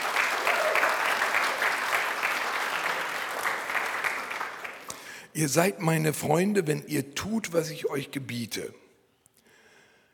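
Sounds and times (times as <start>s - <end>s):
audience applause: 0.0s - 5.1s
speech: 5.4s - 8.8s.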